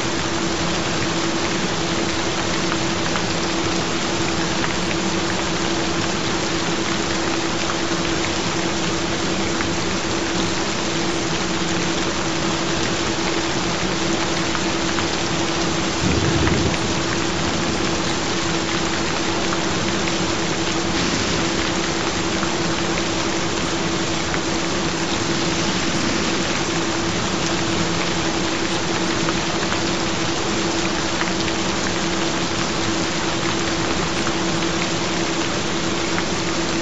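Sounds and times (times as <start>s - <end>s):
gentle rain: 0.0s - 36.8s.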